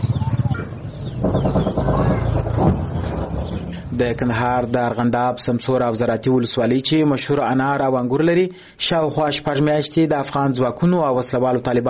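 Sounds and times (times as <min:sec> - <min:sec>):
birds calling among green trees: 0:00.0 - 0:06.0
speech: 0:01.0 - 0:01.7, 0:04.0 - 0:11.8.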